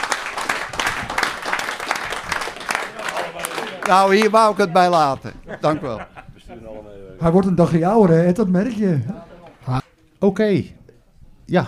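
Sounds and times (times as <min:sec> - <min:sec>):
applause for the board: 0:00.0 - 0:05.1
laughter: 0:02.7 - 0:07.2
speech: 0:03.9 - 0:10.8, 0:11.5 - 0:11.6.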